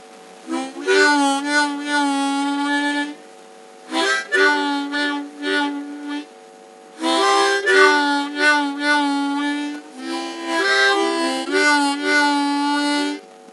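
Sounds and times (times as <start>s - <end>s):
harmonica: 0.4s - 3.2s, 3.8s - 6.3s, 7.0s - 13.2s.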